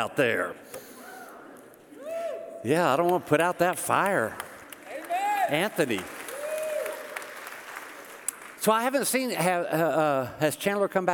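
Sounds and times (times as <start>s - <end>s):
speech: 0.0s - 0.8s, 2.6s - 4.4s, 5.5s - 6.2s, 8.6s - 11.1s
crowd applauding and cheering: 3.8s - 8.8s.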